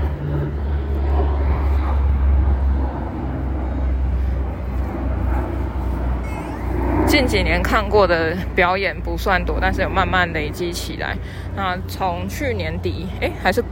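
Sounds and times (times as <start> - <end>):
airplane flying overhead: 0.0 - 13.6
speech: 7.2 - 13.6.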